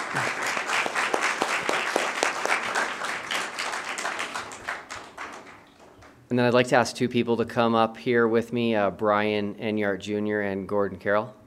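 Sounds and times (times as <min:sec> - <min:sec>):
round of applause: 0:00.0 - 0:06.2
speech: 0:00.1 - 0:00.4, 0:06.3 - 0:11.4.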